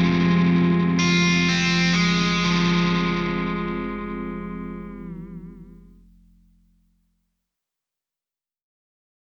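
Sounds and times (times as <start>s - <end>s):
rock bass through Gallien-Krueger 1001RB amplifier: 0.0s - 6.8s.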